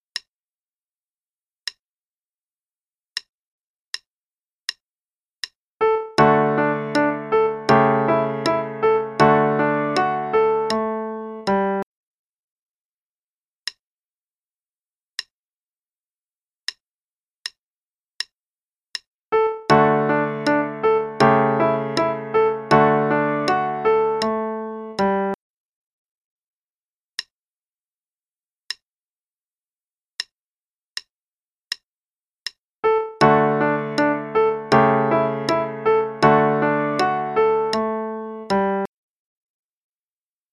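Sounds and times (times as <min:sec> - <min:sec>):
allegro play-along music: 0:05.8 - 0:11.8, 0:19.4 - 0:25.4, 0:32.9 - 0:38.9.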